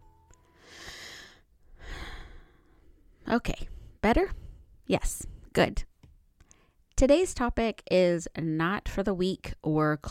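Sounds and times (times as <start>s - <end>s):
slow soft inhale and exhale: 0.4s - 5.5s
speech: 3.3s - 5.9s, 7.0s - 10.0s.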